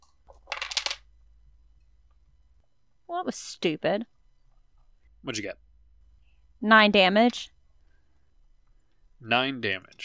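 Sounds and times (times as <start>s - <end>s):
dice clattering across a hard surface: 0.3s - 1.1s
speech: 3.1s - 4.1s, 5.2s - 5.6s, 6.6s - 7.5s, 9.2s - 10.0s.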